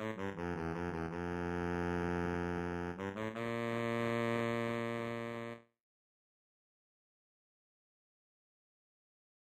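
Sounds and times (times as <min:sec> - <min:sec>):
baritone saxophone: 0:00.0 - 0:05.6.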